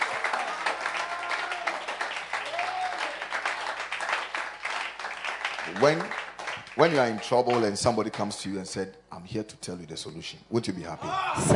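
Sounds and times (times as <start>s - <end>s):
crowd clapping: 0.0s - 8.5s
person whooping: 0.3s - 3.2s, 11.0s - 11.5s
speech: 5.7s - 6.2s, 6.8s - 11.5s.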